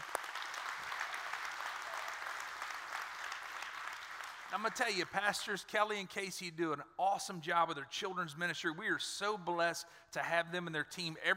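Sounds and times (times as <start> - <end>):
audience applause: 0.0 - 5.1
speech: 4.5 - 11.3.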